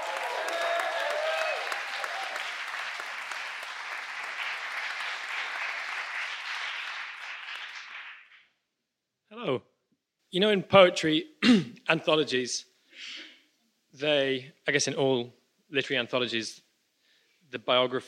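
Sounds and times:
audience applause: 0.0 - 8.5
speech: 10.3 - 13.2, 14.0 - 16.6, 17.5 - 18.0.

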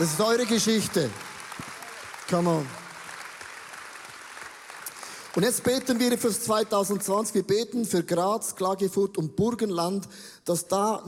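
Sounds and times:
speech: 0.0 - 1.4, 2.3 - 2.8, 5.4 - 11.0
audience applause: 0.0 - 7.1.

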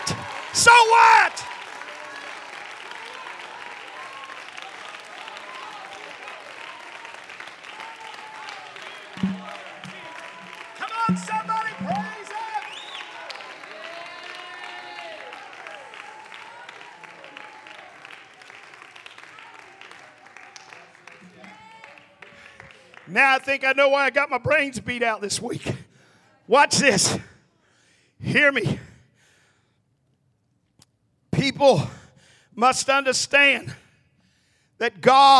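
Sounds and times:
audience clapping loudly: 0.0 - 23.6
speech: 0.6 - 1.4, 23.2 - 25.8, 26.5 - 27.3, 28.3 - 28.8, 31.5 - 32.0, 32.6 - 33.8, 34.8 - 35.3.

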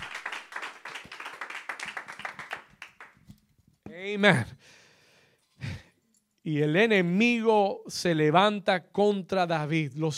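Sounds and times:
audience clapping hands: 0.0 - 3.3
speech: 4.0 - 4.6, 6.5 - 10.1.

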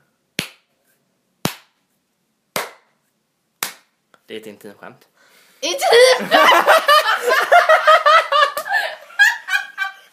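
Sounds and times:
hand claps: 0.4 - 0.7, 1.4 - 1.8, 2.5 - 3.0, 3.6 - 4.0, 8.5 - 8.7
speech: 4.3 - 6.8
laughter: 5.9 - 10.1.

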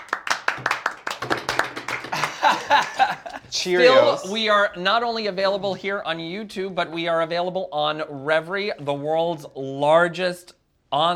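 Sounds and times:
audience applause: 0.0 - 3.6
laughter: 1.9 - 4.4
speech: 3.5 - 11.1.

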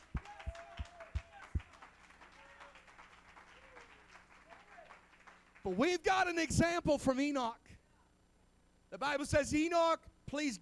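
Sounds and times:
group clapping hands in a steady rhythm: 0.0 - 6.0
scattered applause: 0.0 - 6.0
speech: 5.6 - 7.6, 8.9 - 10.6.

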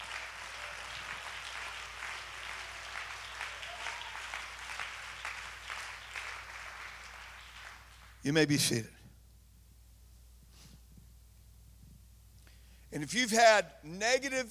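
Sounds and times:
audience clapping: 0.0 - 8.6
speech: 8.2 - 9.0, 13.1 - 14.4.

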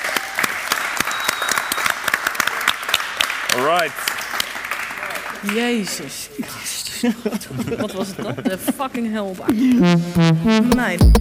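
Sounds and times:
audience applause: 0.0 - 5.8
speech: 3.6 - 4.1, 5.4 - 11.1
laughter: 6.9 - 8.8.

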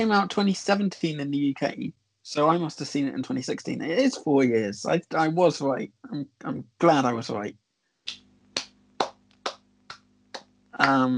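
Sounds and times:
speech: 0.0 - 8.2, 10.8 - 11.1
faint low hum: 0.0 - 11.1
hand clapping: 8.1 - 11.1.

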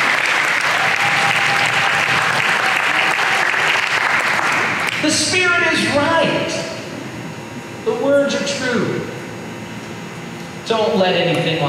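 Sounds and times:
audience applauding: 0.0 - 5.1
speech: 5.1 - 6.7, 7.9 - 9.1, 10.7 - 11.6.

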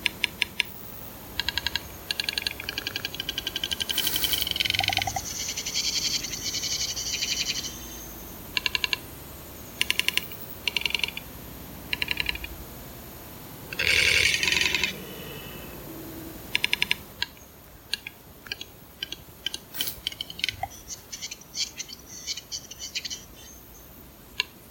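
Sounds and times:
capercaillie cock calling in a Swedish forest: 0.0 - 9.1, 9.7 - 12.6, 13.7 - 15.7, 16.5 - 24.6
scratchy hissing bursts: 2.4 - 7.8, 13.5 - 16.4, 18.8 - 23.5.

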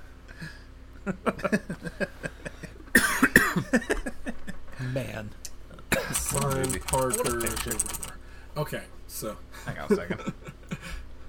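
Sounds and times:
speech: 0.4 - 2.4, 3.7 - 4.2, 4.8 - 5.4, 6.1 - 8.0, 8.6 - 10.4
metal jacks rolled like dice: 6.1 - 8.2.

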